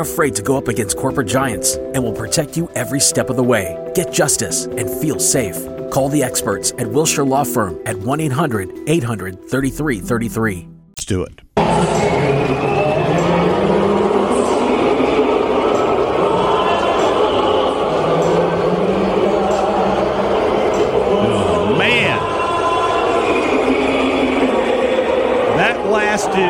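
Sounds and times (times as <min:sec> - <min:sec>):
speech: 0:00.0 - 0:12.8
Canadian crowd booing the national anthem at USA Canada hockey game: 0:11.6 - 0:26.4.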